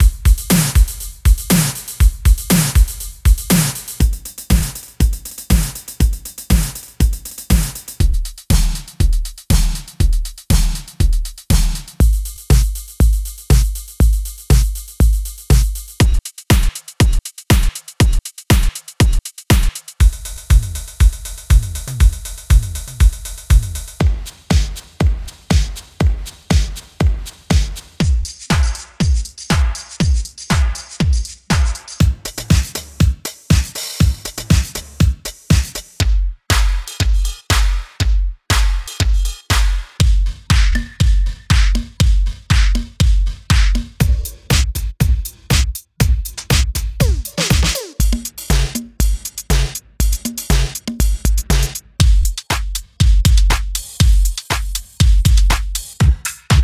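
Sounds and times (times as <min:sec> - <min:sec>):
disco house beats: 0:00.0 - 0:56.6.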